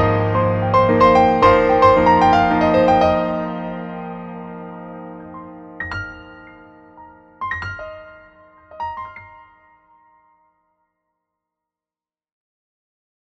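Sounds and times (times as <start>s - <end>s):
Grand CFX grand piano: 0.0s - 10.5s.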